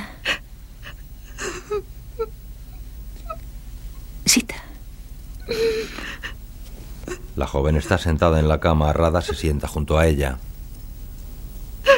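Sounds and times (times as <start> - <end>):
young woman crying in her bedroom: 0.0 - 2.4, 5.4 - 6.4
speech: 7.4 - 10.5.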